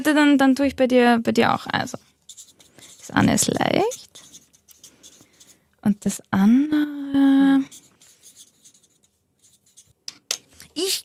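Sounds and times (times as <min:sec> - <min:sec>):
speech: 0:00.0 - 0:02.1, 0:03.1 - 0:04.2, 0:05.8 - 0:07.8, 0:10.8 - 0:11.0
pen writing on a small slip of paper: 0:01.8 - 0:05.6, 0:07.5 - 0:10.0.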